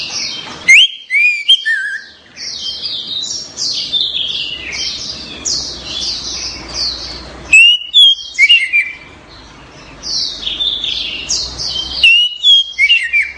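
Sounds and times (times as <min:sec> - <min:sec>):
orange-headed thrush song of slurred whistles: 0:00.7 - 0:02.1, 0:07.5 - 0:09.0, 0:12.0 - 0:13.3.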